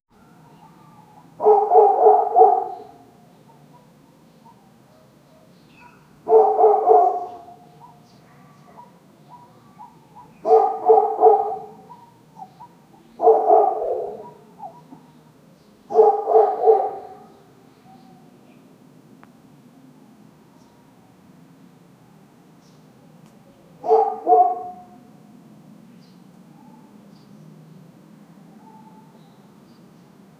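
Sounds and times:
city street ambience: 0:00.1 - 0:30.3.

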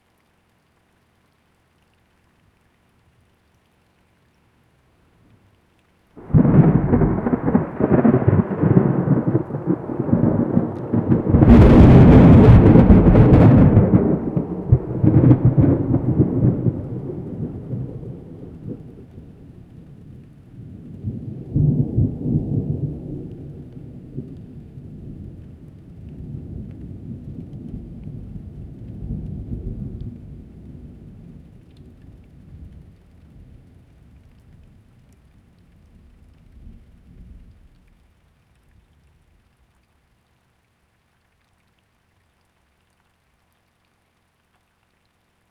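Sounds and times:
thunder through mountains: 0:06.2 - 0:32.9.

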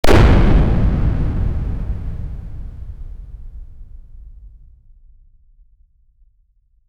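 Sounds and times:
small controlled explosion in an enclosed space: 0:00.0 - 0:03.6.

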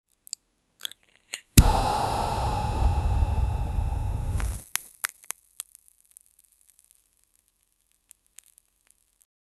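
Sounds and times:
deep inhale of smoke while smoking: 0:01.6 - 0:04.6.

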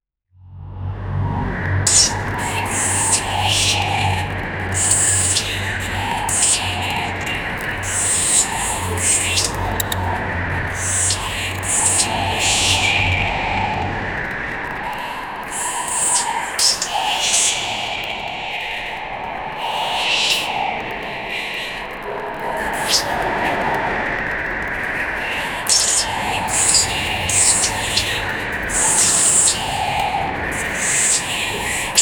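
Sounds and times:
dramatic dark demonic music: 0:00.4 - 0:32.0.

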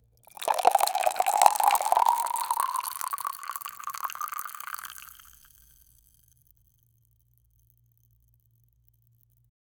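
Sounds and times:
thick chocolate pouring: 0:00.3 - 0:05.5.

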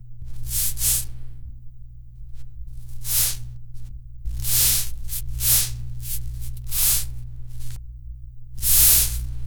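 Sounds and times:
rubbing the eye: 0:00.3 - 0:01.2, 0:02.8 - 0:03.4, 0:04.3 - 0:07.8, 0:08.6 - 0:09.3.

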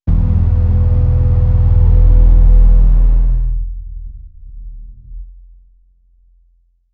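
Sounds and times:
cinematic impact for a film transition: 0:00.1 - 0:04.4.

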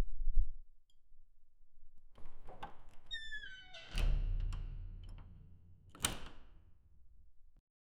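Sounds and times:
heavy doors: 0:02.2 - 0:06.8.

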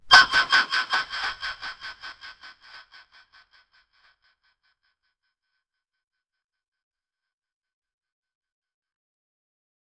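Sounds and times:
snot sound with echo: 0:00.0 - 0:02.8.

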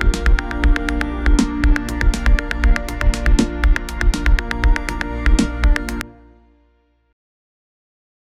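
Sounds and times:
medieval style beat for an MMORPG: 0:00.0 - 0:06.0.

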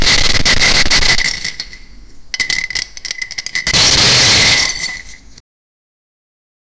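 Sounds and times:
metallic dice: 0:00.2 - 0:05.4.

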